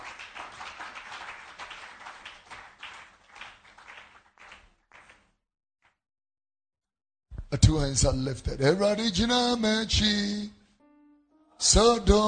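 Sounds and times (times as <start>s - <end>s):
audience clapping: 0.0s - 5.4s
speech: 7.5s - 10.6s, 11.6s - 12.2s.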